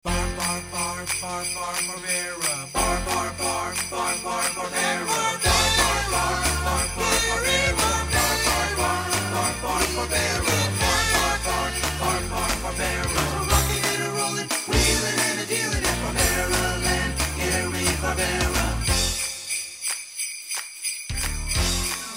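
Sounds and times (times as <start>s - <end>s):
holiday music: 0.0s - 22.1s.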